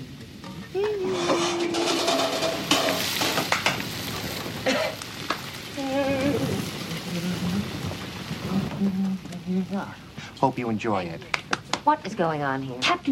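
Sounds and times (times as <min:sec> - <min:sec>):
vegetables sizzling while being stir-fried in a hot pan: 0:00.0 - 0:11.0
utensil scraping: 0:01.0 - 0:03.5
speech: 0:09.8 - 0:13.1.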